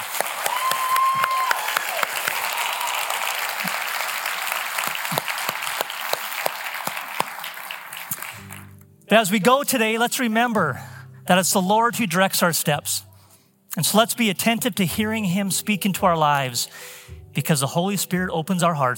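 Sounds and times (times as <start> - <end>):
audience applauding and cheering after baptism: 0.0 - 8.8
speech: 9.1 - 13.1, 13.8 - 18.9.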